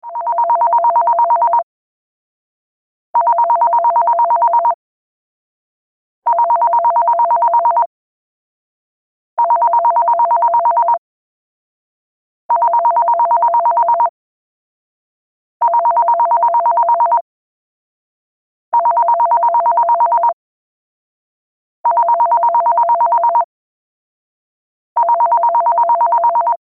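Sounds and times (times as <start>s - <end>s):
landline phone ringtone: 0.1s - 1.7s, 3.2s - 4.8s, 6.3s - 7.9s, 9.4s - 11.0s, 12.5s - 14.1s, 15.6s - 17.2s, 18.8s - 20.3s, 21.9s - 23.4s, 25.0s - 26.6s.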